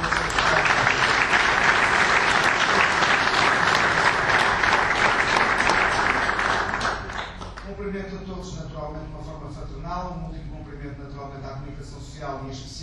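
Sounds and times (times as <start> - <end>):
audience applause: 0.0 - 7.7
speech: 10.8 - 12.8.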